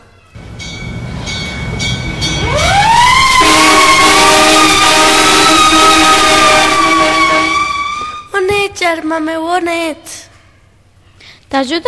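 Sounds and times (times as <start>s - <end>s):
ambulance siren: 2.4s - 8.3s
speech: 9.1s - 10.1s, 11.5s - 11.8s.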